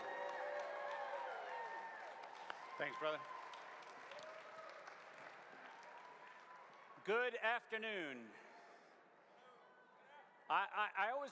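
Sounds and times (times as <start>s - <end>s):
audience cheering: 0.0s - 5.0s
audience applauding: 0.0s - 7.0s
speech: 2.8s - 3.4s, 7.1s - 8.4s, 10.5s - 11.3s.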